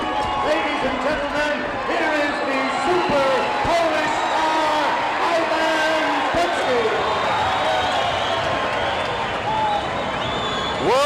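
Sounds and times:
wrestling crowd roaring and cheering: 0:00.0 - 0:11.0.

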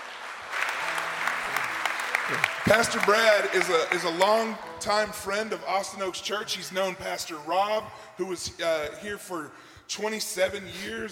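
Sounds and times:
audience round of applause: 0:00.0 - 0:04.8
speech: 0:02.3 - 0:11.0.

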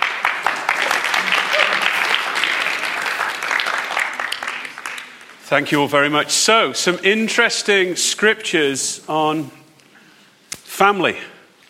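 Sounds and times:
audience clapping: 0:00.0 - 0:05.8
speech: 0:05.5 - 0:09.6, 0:10.8 - 0:11.3.

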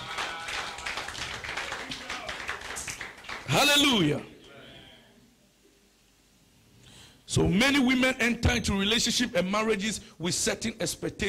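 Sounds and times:
audience clapping: 0:00.0 - 0:04.1
speech: 0:03.5 - 0:04.3, 0:07.4 - 0:11.2.

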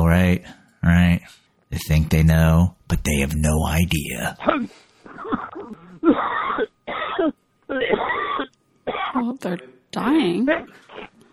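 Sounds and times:
speech: 0:00.2 - 0:04.8, 0:09.4 - 0:10.9
person coughing from choking on coffee: 0:04.4 - 0:09.3.

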